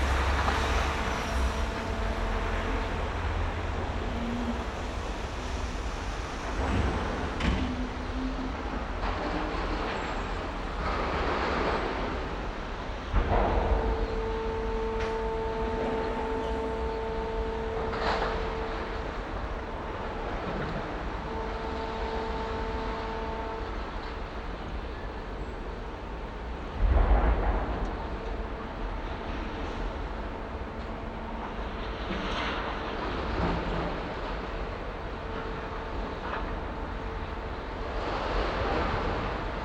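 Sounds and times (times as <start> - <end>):
construction site ambience: 0.0 - 39.6.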